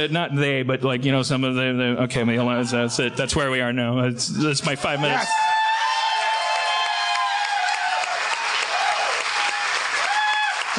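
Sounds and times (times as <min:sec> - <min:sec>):
speech: 0:00.0 - 0:05.6
person whooping: 0:05.0 - 0:10.6
crowd applause: 0:05.0 - 0:10.7.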